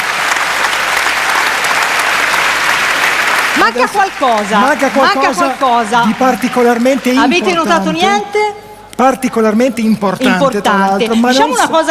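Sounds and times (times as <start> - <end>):
live audience applause for two teams: 0.0 - 7.9
speech: 3.6 - 11.9.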